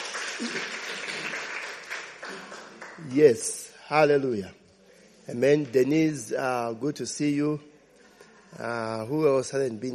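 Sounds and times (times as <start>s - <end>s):
audience giving a hand clap: 0.0s - 3.6s
speech: 0.4s - 0.8s, 3.0s - 4.6s, 5.3s - 7.7s, 8.5s - 9.9s.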